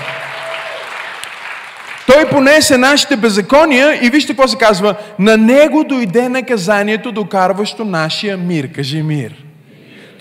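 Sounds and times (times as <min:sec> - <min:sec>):
audience clapping: 0:00.0 - 0:02.5
speech: 0:02.1 - 0:09.5.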